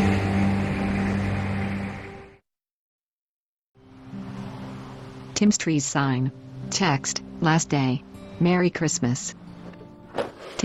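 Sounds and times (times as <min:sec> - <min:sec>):
truck engine driving off: 0:00.0 - 0:02.3
speech: 0:05.4 - 0:09.4, 0:10.2 - 0:10.6.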